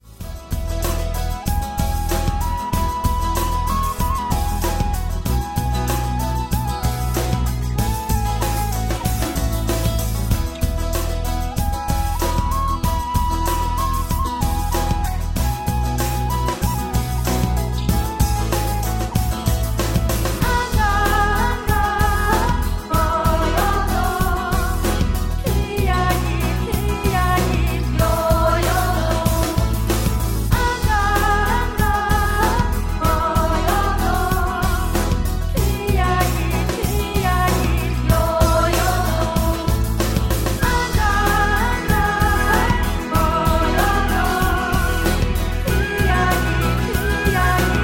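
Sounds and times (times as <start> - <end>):
tambourine: 0.0 - 47.8.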